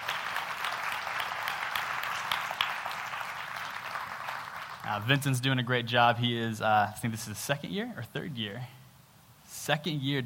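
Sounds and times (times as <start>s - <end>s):
audience applause: 0.0s - 5.0s
speech: 4.9s - 8.8s, 9.6s - 10.2s.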